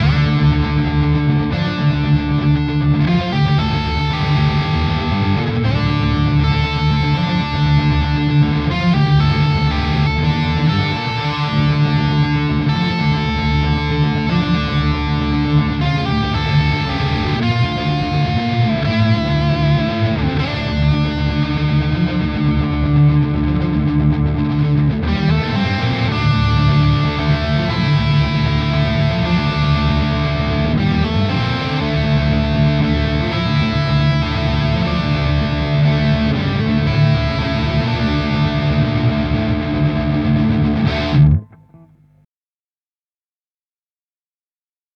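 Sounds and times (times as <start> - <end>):
Schecter Banshee guitar: 0.0 - 42.2.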